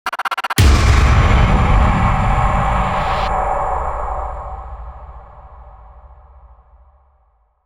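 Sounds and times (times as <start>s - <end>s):
rising tension build: 0.1s - 6.3s
impact hit: 0.6s - 7.0s.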